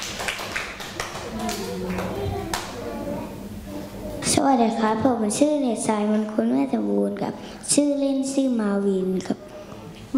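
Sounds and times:
group applauding: 0.0s - 2.8s
murmuring voices: 1.0s - 4.4s
speech: 1.4s - 2.4s, 4.3s - 9.4s.

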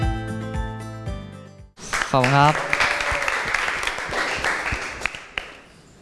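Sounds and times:
crowd applauding: 1.8s - 5.7s
speech: 2.1s - 2.7s.

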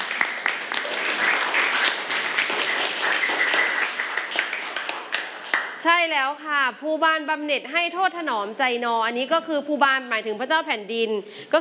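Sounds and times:
classroom applause for a classmate: 0.0s - 5.8s
speech: 5.8s - 11.5s.

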